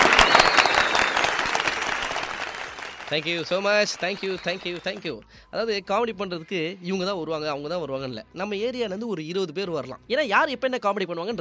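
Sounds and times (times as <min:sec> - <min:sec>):
applause for two callers after a comedy performance: 0:00.0 - 0:05.2
speech: 0:03.1 - 0:11.4.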